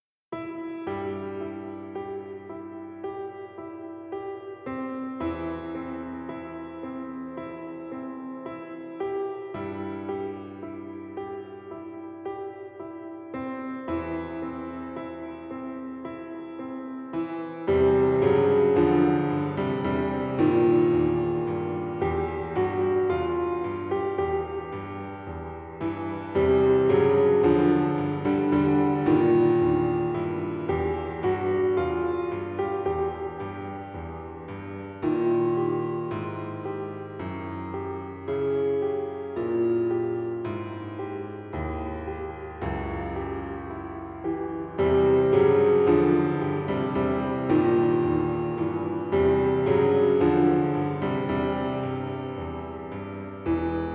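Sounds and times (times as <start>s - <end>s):
piano theme: 0.0s - 53.9s.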